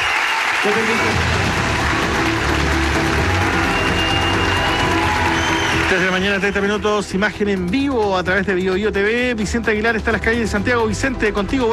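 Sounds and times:
audience applause: 0.0 - 6.9
speech: 0.6 - 1.6, 5.9 - 11.7.

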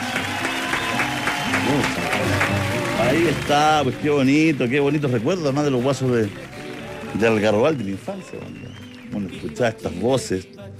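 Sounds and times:
applause in radio studio: 0.0 - 10.4
speech: 1.7 - 2.0, 3.1 - 6.5, 7.1 - 10.7.

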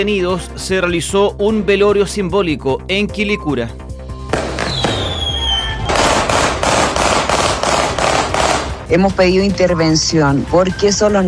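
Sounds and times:
speech: 0.0 - 3.9, 8.9 - 11.2
high whistling streak: 4.1 - 6.3
gunshots or fireworks bursts: 4.3 - 8.9.

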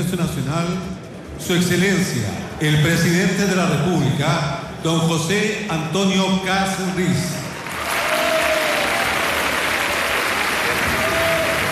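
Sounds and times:
speech: 0.0 - 7.4
applause in the Salón de Honor of the Congreso Nacional: 7.0 - 11.7.

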